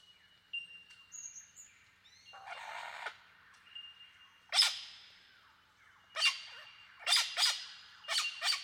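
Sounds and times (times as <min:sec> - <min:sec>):
Superb lyrebird Menura novaehollandiae singing: 0:00.0 - 0:08.6.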